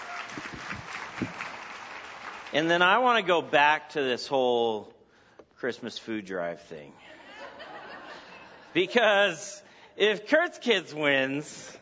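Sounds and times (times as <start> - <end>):
crowd applauding: 0.0 - 2.7
speech: 2.5 - 4.9, 5.6 - 7.0, 8.7 - 11.8
laughter: 7.0 - 9.1.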